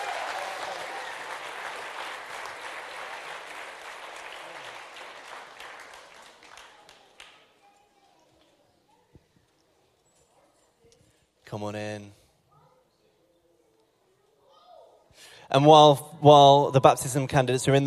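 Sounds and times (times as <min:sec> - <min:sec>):
audience applause for baptism candidate: 0:00.0 - 0:07.6
speech: 0:11.5 - 0:12.2, 0:15.5 - 0:17.8.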